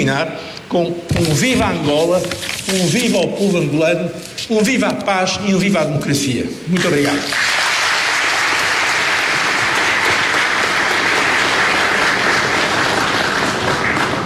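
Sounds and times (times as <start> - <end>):
speech: 0.0 - 7.5
sustained applause from a large crowd: 6.9 - 14.2.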